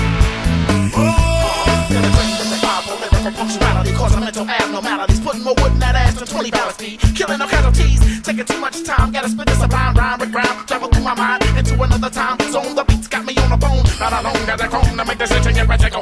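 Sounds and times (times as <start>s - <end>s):
reggae band playing: 0.0s - 16.0s.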